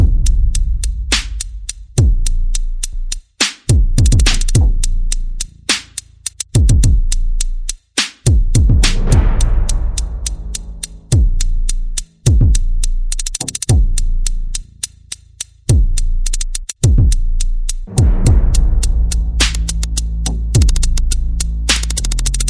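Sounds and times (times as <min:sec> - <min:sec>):
bass: 0:00.0 - 0:22.4
percussion: 0:00.0 - 0:22.4.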